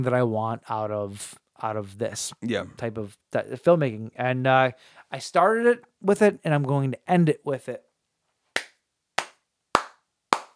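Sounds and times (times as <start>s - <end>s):
speech: 0.0s - 7.9s
slow hand clapping: 8.6s - 10.5s.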